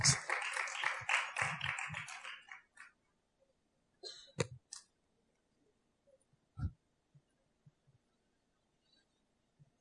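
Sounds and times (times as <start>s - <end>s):
group clapping: 0.0s - 3.0s.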